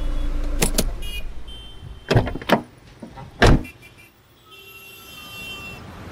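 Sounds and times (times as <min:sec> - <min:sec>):
car engine rumble while parking in garage: 0:00.0 - 0:03.6
sharp thumps and clunks: 0:00.4 - 0:01.0, 0:02.1 - 0:03.7.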